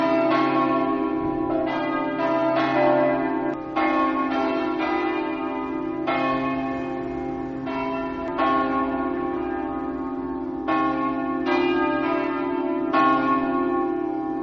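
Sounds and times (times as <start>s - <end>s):
church bells ringing in Cassacco: 0.0s - 14.4s.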